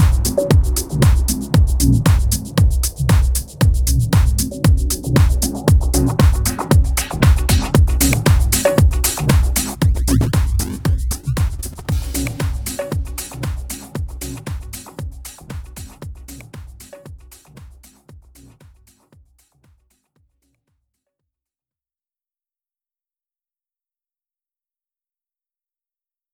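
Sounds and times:
techno fitness music: 0:00.0 - 0:19.0.

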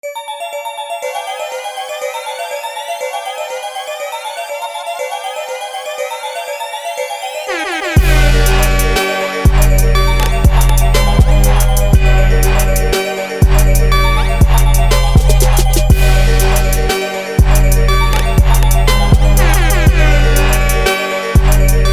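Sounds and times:
trap beat: 0:07.5 - 0:21.9.

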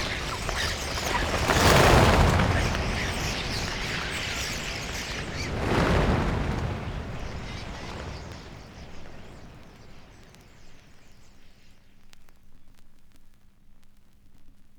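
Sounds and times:
flock of common starlings babbling: 0:00.0 - 0:11.2.

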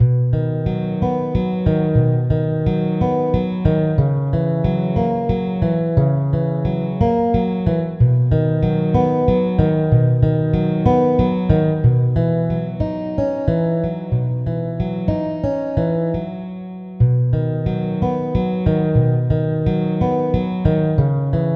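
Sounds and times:
relaxing guitar music: 0:00.0 - 0:21.5.

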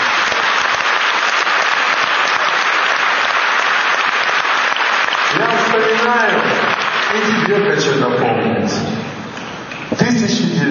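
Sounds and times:
audience applause: 0:00.0 - 0:08.0
speech: 0:07.2 - 0:08.9, 0:10.0 - 0:10.6.

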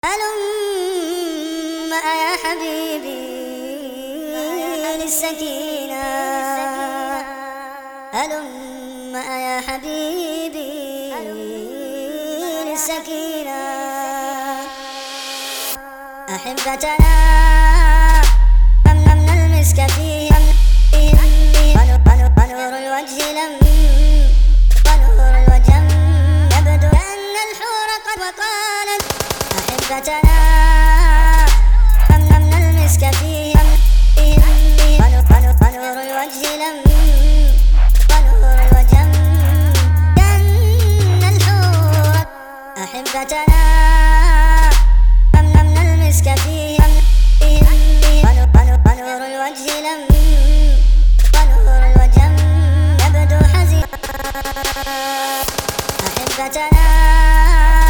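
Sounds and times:
trap beat: 0:16.5 - 0:22.6, 0:23.2 - 0:27.1, 0:29.0 - 0:42.3, 0:43.0 - 0:49.0, 0:49.7 - 0:57.8.

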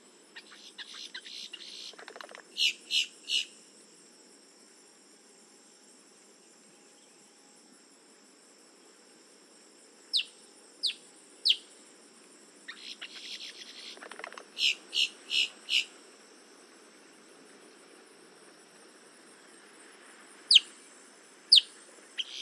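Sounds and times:
boat-tailed grackle Quiscalus major calls: 0:00.4 - 0:03.5, 0:12.7 - 0:16.0, 0:20.5 - 0:20.7, 0:21.5 - 0:22.4.

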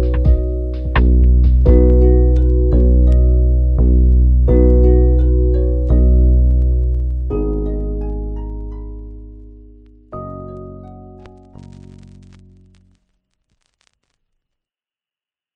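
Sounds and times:
sad music: 0:00.0 - 0:12.4.

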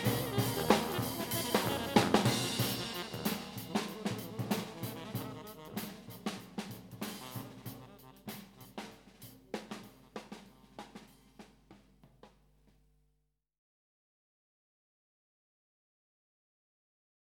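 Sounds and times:
tuba trio: 0:00.0 - 0:11.3.

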